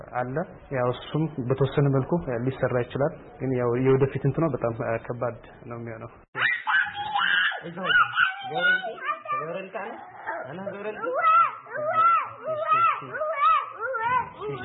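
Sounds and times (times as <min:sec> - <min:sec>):
speech: 0:00.2 - 0:06.3, 0:07.6 - 0:11.9, 0:12.6 - 0:13.3, 0:14.4 - 0:14.6
four-and-a-half-year-old girl crying and moaning in pain: 0:06.5 - 0:09.5, 0:11.0 - 0:14.6.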